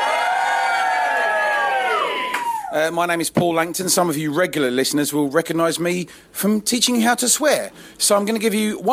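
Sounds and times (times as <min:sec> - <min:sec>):
audience cheering in the Cavendish Arms pub in Stockwell, London: 0:00.0 - 0:02.8
speech: 0:02.7 - 0:08.9.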